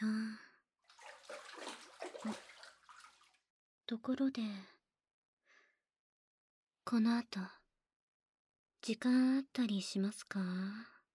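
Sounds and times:
water splashing while rinsing the body in a bath: 0.9s - 3.4s
speech: 3.9s - 4.8s, 6.9s - 7.6s, 8.8s - 10.9s.

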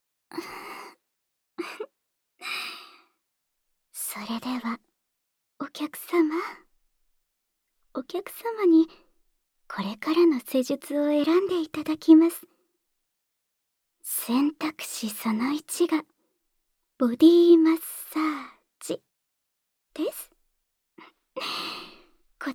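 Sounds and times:
person's voice: 5.6s - 6.6s, 8.0s - 9.0s, 9.7s - 12.5s, 14.1s - 16.0s, 17.0s - 19.0s, 20.0s - 20.3s.

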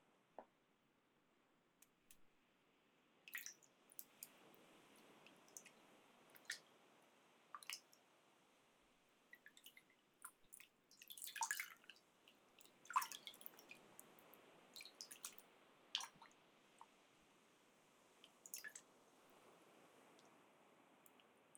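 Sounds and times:
drips and splashes of hands warmed in hot water: 3.3s - 4.4s, 5.3s - 6.6s, 7.5s - 8.0s, 9.3s - 14.1s, 14.8s - 16.3s, 18.2s - 18.9s.

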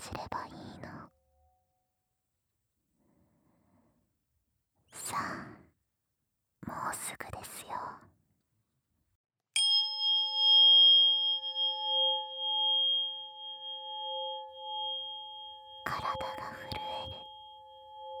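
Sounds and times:
tuning fork ringing: 9.6s - 18.1s.

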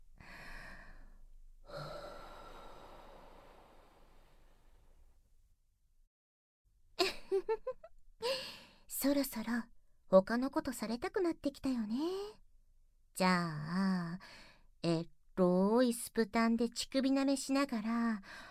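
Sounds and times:
warm breathing close to the microphone: 0.2s - 4.9s, 18.2s - 18.4s
speech: 9.0s - 12.4s, 13.2s - 18.4s.

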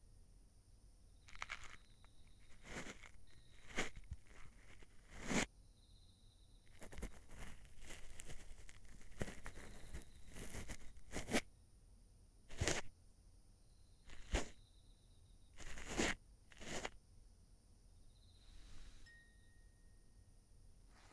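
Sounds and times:
ASMR ear cleaning of the right ear: 1.3s - 5.5s, 6.8s - 11.4s, 12.5s - 12.9s, 14.1s - 14.6s, 15.6s - 17.0s.

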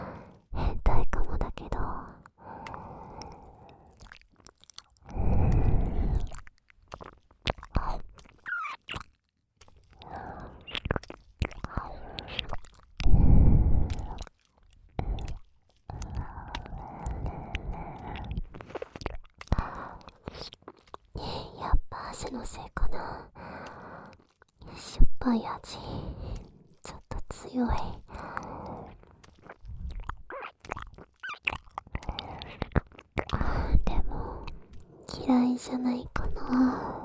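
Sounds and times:
whispering: 0.0s - 3.8s, 11.6s - 14.3s, 15.0s - 18.8s, 21.2s - 23.8s, 24.6s - 29.0s, 31.9s - 37.0s
wet ASMR licking at a sweat-damp ear: 0.2s - 37.0s
speech: 22.4s - 23.4s, 25.2s - 26.1s, 27.5s - 28.0s, 35.6s - 36.2s.

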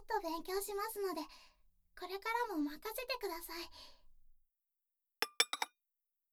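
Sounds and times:
speech: 0.1s - 4.0s
dishes clinking as they are cleared: 5.2s - 5.7s.

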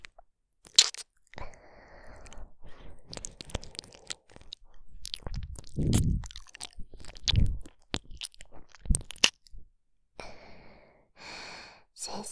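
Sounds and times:
soothing ear licking sounds: 0.0s - 9.6s.

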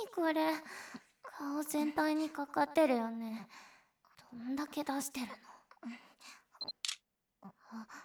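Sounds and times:
speech: 0.2s - 0.8s, 1.6s - 3.6s, 4.3s - 6.0s
camera electronic beep: 6.6s - 7.0s.

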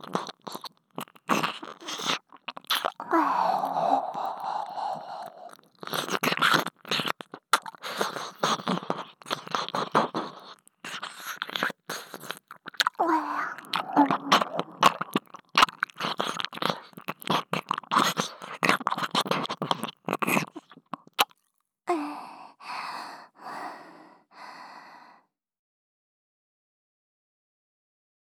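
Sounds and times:
ASMR ear licking sounds: 0.0s - 21.4s.

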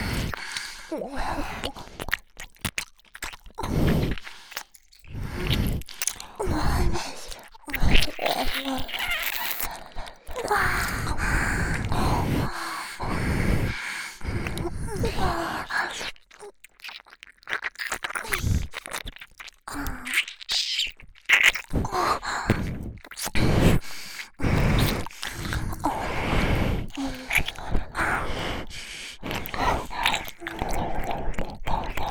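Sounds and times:
double nose breathing: 0.0s - 2.2s, 3.6s - 16.2s, 21.7s - 32.1s
ear licking: 0.0s - 32.1s.

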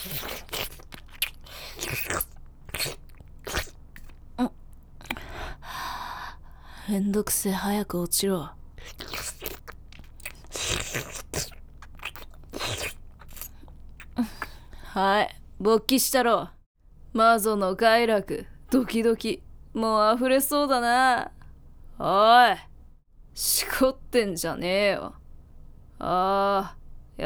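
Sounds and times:
wet saliva mouth sounds: 0.0s - 5.6s, 8.8s - 14.9s
speech: 6.9s - 8.6s, 15.0s - 16.6s, 17.2s - 21.4s, 22.0s - 22.7s, 23.4s - 25.2s, 26.0s - 27.2s.

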